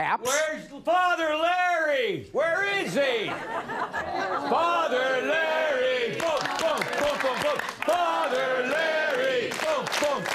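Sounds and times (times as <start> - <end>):
speech: 0.0 - 10.3
laughter: 2.8 - 5.4, 6.1 - 8.0
crowd cheering and shouting: 4.4 - 10.3.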